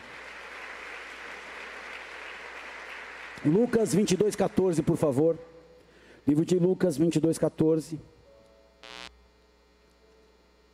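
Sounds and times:
audience applause: 0:00.0 - 0:04.7
speech: 0:03.4 - 0:05.5, 0:06.3 - 0:08.1.

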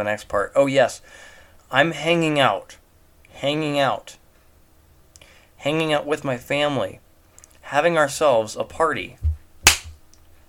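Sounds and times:
speech: 0:00.0 - 0:02.8, 0:03.4 - 0:04.2, 0:05.6 - 0:07.0, 0:07.7 - 0:09.3
hand clap: 0:09.6 - 0:10.0.

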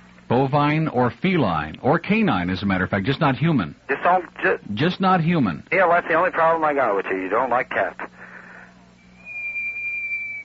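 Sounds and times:
speech: 0:00.3 - 0:08.0
microwave buzzer: 0:08.2 - 0:10.4.

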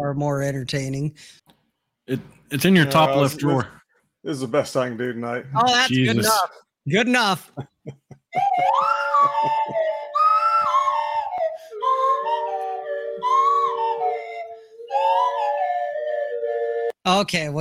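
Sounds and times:
speech: 0:00.0 - 0:01.5, 0:02.1 - 0:09.9, 0:17.0 - 0:17.5
laughter: 0:07.5 - 0:11.0
slide whistle toy flute: 0:08.4 - 0:17.0.

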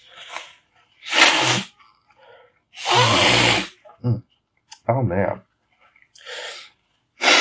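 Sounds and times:
person blowing nose: 0:01.0 - 0:01.8, 0:02.8 - 0:03.8, 0:07.2 - 0:07.3
speech: 0:04.9 - 0:05.5.

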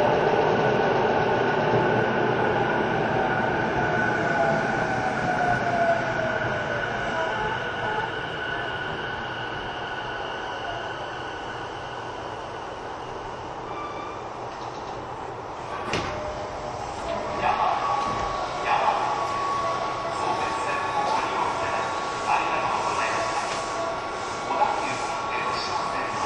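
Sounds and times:
train rumble and whine: 0:00.0 - 0:26.2
voices: 0:17.0 - 0:26.2.

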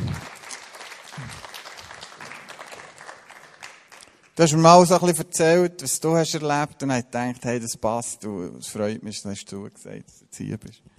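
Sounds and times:
audience applause: 0:00.0 - 0:04.3
speech: 0:04.4 - 0:10.9.

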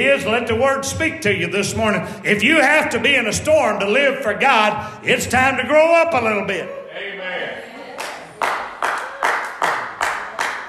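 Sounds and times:
speech: 0:00.0 - 0:06.8
hands clapping in a church audience: 0:08.0 - 0:10.6.

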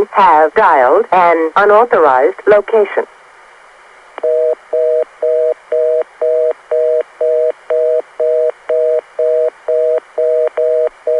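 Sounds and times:
speech: 0:00.2 - 0:03.2
reorder tone on a Los Angeles telephone switch: 0:04.2 - 0:11.1.

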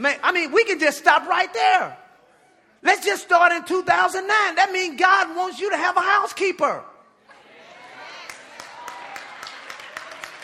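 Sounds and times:
speech: 0:00.0 - 0:02.0, 0:02.8 - 0:06.9
audience applause: 0:07.8 - 0:10.4.

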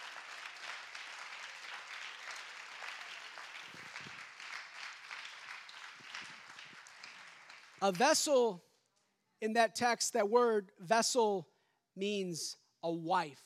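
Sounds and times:
audience clapping hands: 0:00.0 - 0:08.2
speech: 0:07.8 - 0:08.7, 0:09.4 - 0:13.4.

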